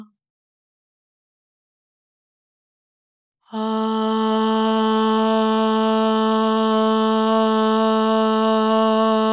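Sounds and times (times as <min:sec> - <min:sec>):
dry voice singing ahh at 432 Hz: 0:03.5 - 0:09.3.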